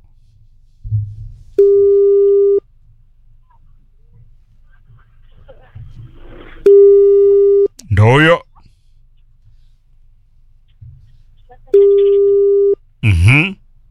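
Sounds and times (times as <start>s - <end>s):
telephone busy signal on an unanswered call: 1.6s - 2.7s, 6.6s - 7.8s, 11.7s - 12.8s
speech: 8.0s - 8.4s.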